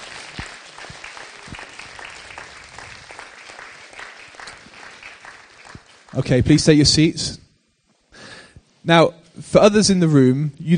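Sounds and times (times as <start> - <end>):
audience applause: 0.0 - 6.5
speech: 6.1 - 7.4, 8.9 - 10.7.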